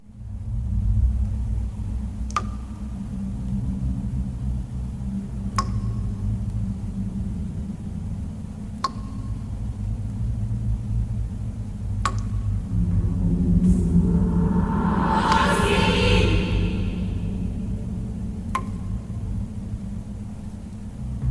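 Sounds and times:
cavern ambience: 0:00.0 - 0:21.2.

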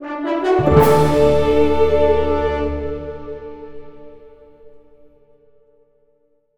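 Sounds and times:
big reward sound: 0:00.6 - 0:04.2.

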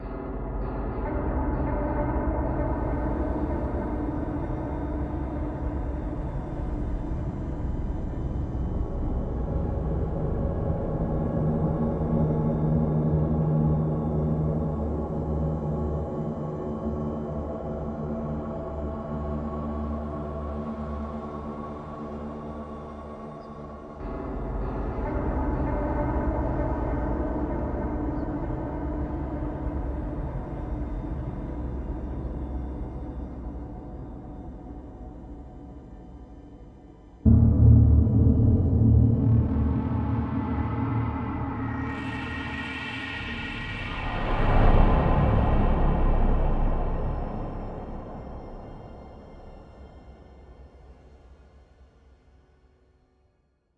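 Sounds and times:
horror music: 0:00.0 - 0:52.2.

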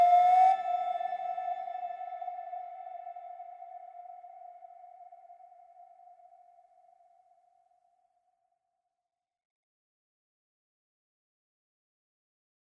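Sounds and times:
night exploration string flute melody: 0:00.0 - 0:04.4.

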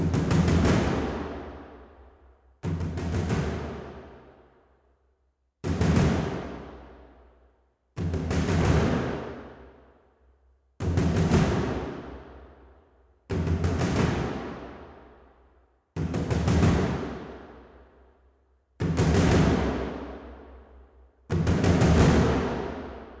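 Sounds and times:
drum track: 0:00.0 - 0:01.6, 0:02.6 - 0:04.2, 0:08.0 - 0:09.5, 0:10.8 - 0:12.2, 0:13.3 - 0:14.8, 0:16.0 - 0:17.4, 0:18.8 - 0:20.1, 0:21.3 - 0:22.9.

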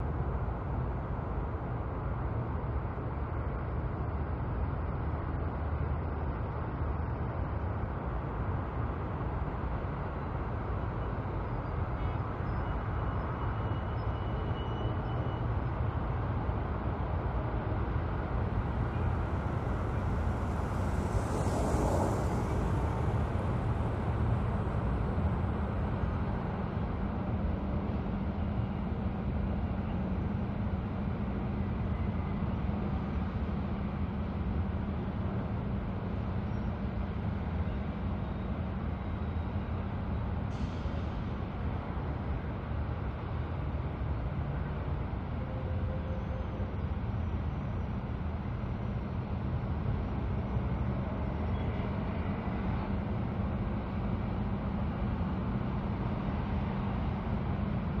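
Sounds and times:
city night ambience: 0:00.0 - 0:57.9.

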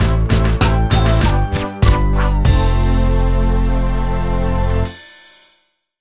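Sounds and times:
losing jingle at 88 BPM: 0:00.6 - 0:05.4.

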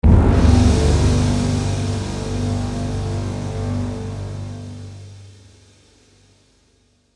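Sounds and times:
hit: 0:00.0 - 0:05.5.

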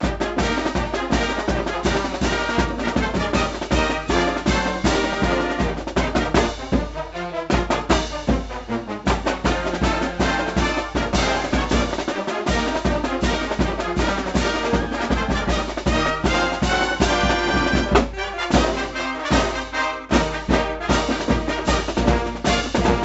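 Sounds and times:
fight tune: 0:00.0 - 0:23.0.

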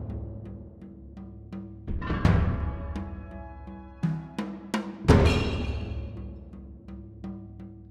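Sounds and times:
town music formation: 0:01.8 - 0:06.6.

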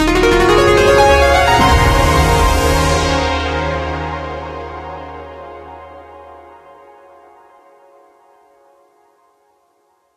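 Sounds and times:
fanfare: 0:00.0 - 0:05.7.

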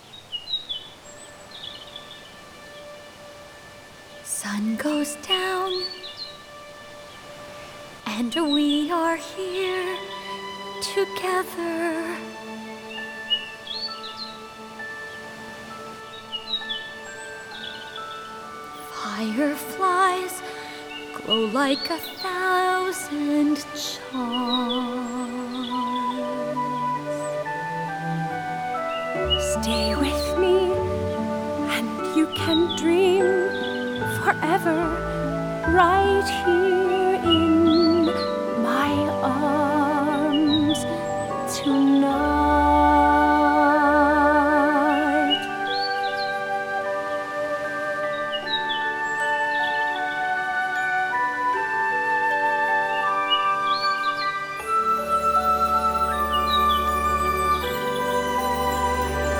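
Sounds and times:
lullaby music: 0:00.0 - 0:59.3.

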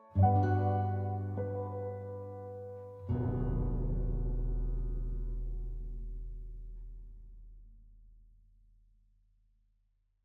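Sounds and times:
music intro: 0:00.0 - 0:06.2.

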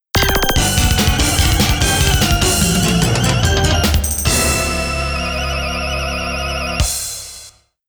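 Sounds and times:
Roland SC-55 MIDI synthesizer music: 0:00.4 - 0:07.1.

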